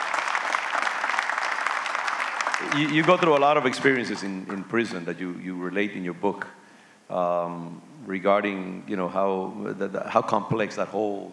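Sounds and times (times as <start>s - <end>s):
audience applause: 0.0s - 4.2s
speech: 2.6s - 11.3s.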